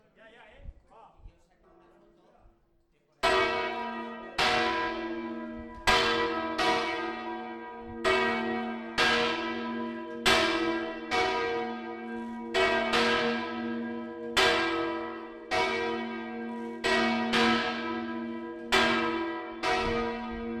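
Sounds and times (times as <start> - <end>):
bell: 3.2 - 20.5.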